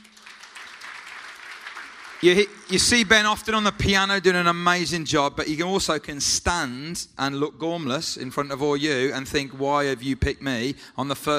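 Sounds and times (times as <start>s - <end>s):
audience applause: 0.0s - 3.4s
speech: 2.2s - 11.3s.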